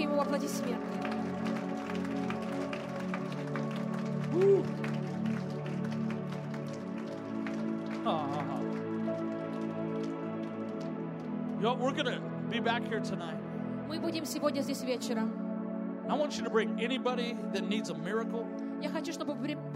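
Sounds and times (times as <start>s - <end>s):
audience hand clapping: 0.0s - 12.1s
speech: 0.2s - 1.0s, 11.6s - 13.4s, 14.0s - 15.4s, 16.1s - 19.7s.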